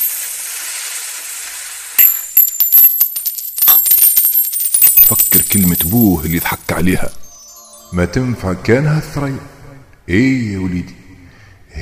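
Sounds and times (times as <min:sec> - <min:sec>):
gold coins pouring down: 0:00.0 - 0:01.0, 0:02.0 - 0:08.0
soft hiss: 0:00.0 - 0:10.3
speech: 0:05.1 - 0:07.2, 0:07.9 - 0:09.5, 0:10.1 - 0:11.0.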